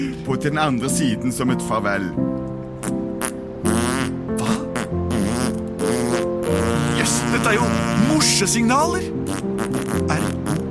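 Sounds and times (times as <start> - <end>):
speech: 0.0 - 3.0, 7.0 - 9.2
farting: 2.8 - 8.2, 9.2 - 10.7.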